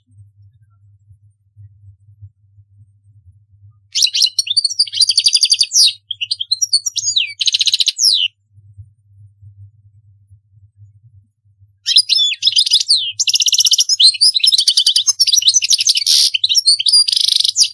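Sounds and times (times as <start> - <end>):
European goldfinch singing: 4.0 - 8.3, 11.9 - 17.7.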